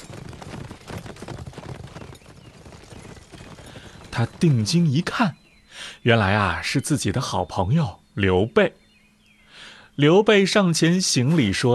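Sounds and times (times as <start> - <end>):
hoofbeats of several ridden horses approaching: 0.0 - 5.4
speech: 4.2 - 8.8, 10.0 - 11.7.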